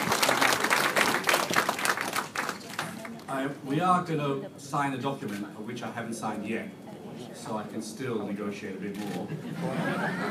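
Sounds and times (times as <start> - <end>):
audience round of applause: 0.0 - 3.3
speech: 3.4 - 6.8, 7.4 - 10.2
laughter: 9.2 - 10.2.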